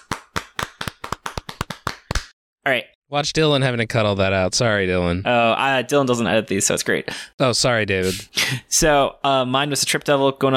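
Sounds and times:
hands clapping: 0:00.0 - 0:02.4
speech: 0:02.6 - 0:10.5.

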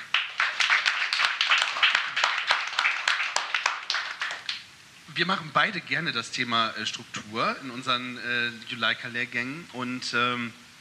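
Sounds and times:
audience applause: 0:00.0 - 0:04.6
speech: 0:05.2 - 0:10.6.

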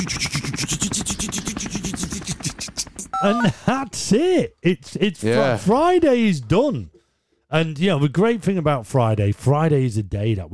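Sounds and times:
speech: 0:00.0 - 0:00.9, 0:03.2 - 0:10.5
traffic helicopter sound effect, rotor chopping: 0:00.1 - 0:03.1.

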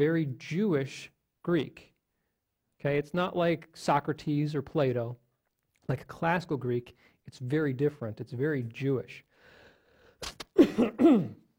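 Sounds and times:
speech: 0:00.0 - 0:01.9, 0:02.8 - 0:05.2, 0:05.9 - 0:09.3, 0:10.2 - 0:11.4
person clearing throat into microphone: 0:10.6 - 0:11.5.

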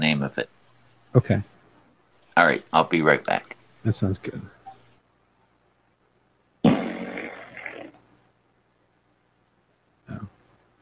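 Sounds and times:
speech: 0:00.0 - 0:01.5, 0:02.4 - 0:04.6
fart sound effect: 0:06.6 - 0:08.0.

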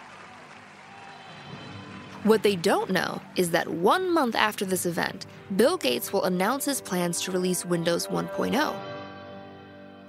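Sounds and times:
crowd applauding: 0:00.0 - 0:04.1
speech: 0:02.2 - 0:08.9.

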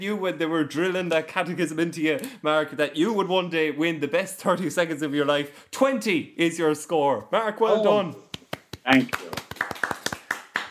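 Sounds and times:
speech: 0:00.0 - 0:09.4
hands clapping: 0:08.2 - 0:10.6.

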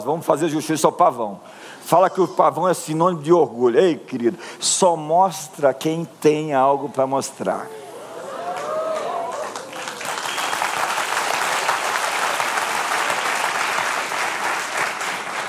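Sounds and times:
speech: 0:00.0 - 0:07.8
audience round of applause: 0:08.4 - 0:15.4.

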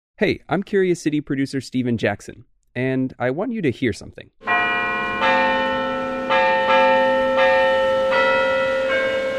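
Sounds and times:
speech: 0:00.2 - 0:04.4
church bells ringing: 0:04.4 - 0:09.3.

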